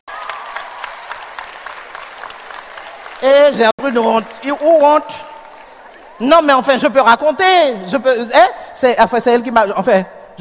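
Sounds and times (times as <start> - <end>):
audience applause: 0.0 - 6.2
speech: 3.2 - 5.3, 6.2 - 10.3.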